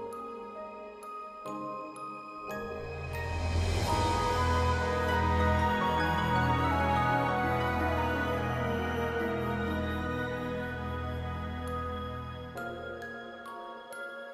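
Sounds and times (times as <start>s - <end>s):
theme music: 2.5s - 12.8s.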